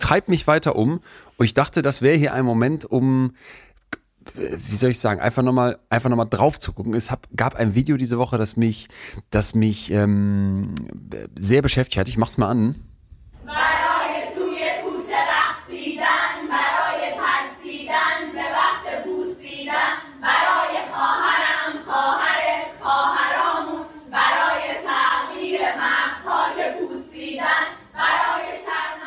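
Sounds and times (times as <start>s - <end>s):
speech: 0.1s - 12.9s
group of girls in Iran singing a song in unison: 13.4s - 29.0s.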